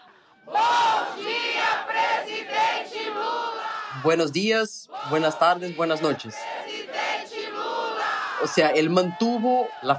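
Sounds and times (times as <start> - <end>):
large crowd chanting outside a prison: 0.0 - 9.9
speech: 4.0 - 6.5, 8.4 - 9.9.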